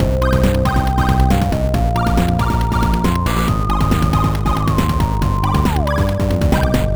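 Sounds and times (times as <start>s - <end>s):
chiptune loop: 0.0s - 6.9s.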